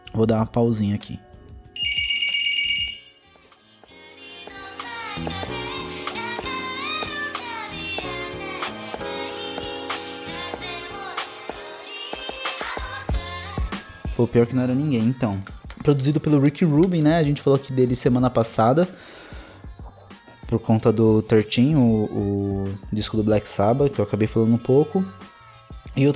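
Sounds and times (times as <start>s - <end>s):
music playing: 0.0s - 26.1s
speech: 0.2s - 1.3s, 14.2s - 19.1s, 20.5s - 25.3s, 26.0s - 26.1s
phone ringing with an incoming call: 1.8s - 3.2s.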